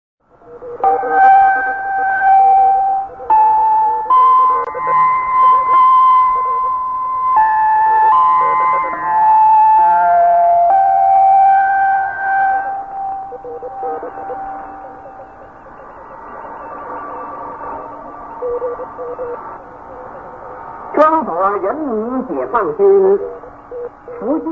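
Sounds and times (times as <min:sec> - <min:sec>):
radio interval signal: 0:00.4 - 0:24.5.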